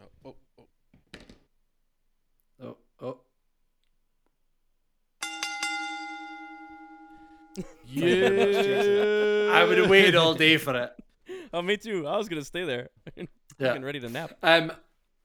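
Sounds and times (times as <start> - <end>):
soft taps and knocks: 0.9 - 1.5
single bright bell strike: 5.2 - 8.9
laughter: 7.6 - 14.4
speech: 7.6 - 14.8.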